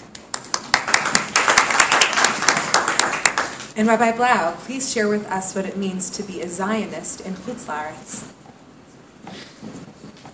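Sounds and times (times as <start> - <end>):
audience applause: 0.2 - 3.7
speech: 3.8 - 8.5.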